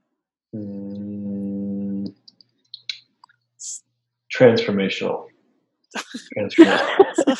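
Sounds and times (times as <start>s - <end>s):
speech: 0.5s - 0.8s, 3.6s - 5.3s, 5.9s - 7.3s
person humming: 0.6s - 2.1s
laughter: 6.0s - 7.3s.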